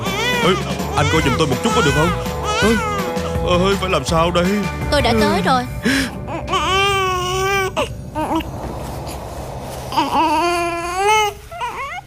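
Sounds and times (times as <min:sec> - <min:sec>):
baby crying: 0:00.0 - 0:03.5, 0:05.9 - 0:09.2, 0:09.9 - 0:12.0
speech: 0:00.4 - 0:06.2.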